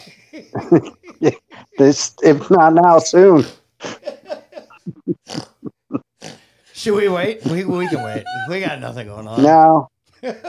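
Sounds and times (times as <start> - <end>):
laughter: 0.2 - 1.7, 7.4 - 9.0, 10.2 - 10.4
speech: 0.3 - 4.0, 5.3 - 5.5, 6.8 - 10.4
pig snorting among piglets: 5.3 - 5.6, 6.2 - 6.4, 7.4 - 8.1.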